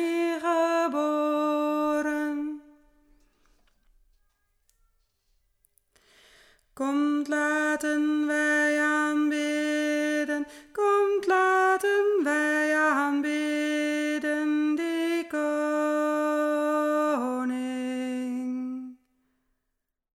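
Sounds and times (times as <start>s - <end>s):
alto voice singing a Christmas carol: 0.0s - 3.2s, 6.8s - 19.1s.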